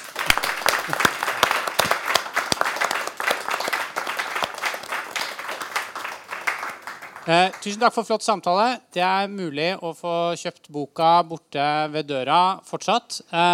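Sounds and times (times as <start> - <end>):
audience applause: 0.0 - 7.9
speech: 7.3 - 13.5.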